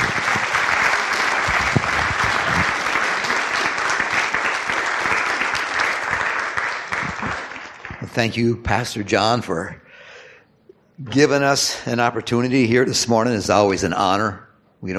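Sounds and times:
audience applause welcoming two pastors at a ministry gathering: 0:00.0 - 0:08.2
speech: 0:08.2 - 0:09.8, 0:11.0 - 0:14.9.

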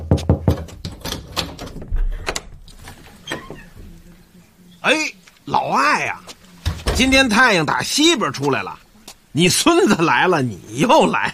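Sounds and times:
door opening with clicks and rattles: 0:00.1 - 0:04.0
speech: 0:04.8 - 0:06.2, 0:07.0 - 0:11.3.

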